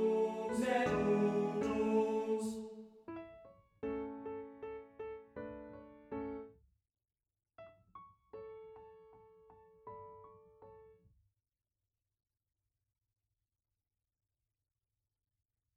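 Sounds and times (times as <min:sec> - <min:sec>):
rondo allegretto for piano: 0:00.0 - 0:06.6, 0:07.6 - 0:11.0.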